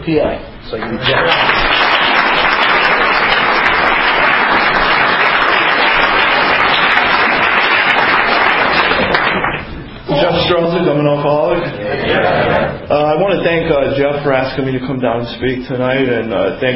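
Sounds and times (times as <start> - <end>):
speech: 0.0 - 1.8, 10.3 - 16.7
audience applause welcoming a speaker at an evening speaker meeting: 0.8 - 9.7.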